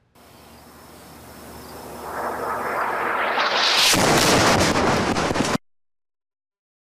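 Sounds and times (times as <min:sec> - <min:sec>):
rushing roar of incoming airstrike: 0:01.3 - 0:04.6
loud explosion from airstrike: 0:01.6 - 0:05.6.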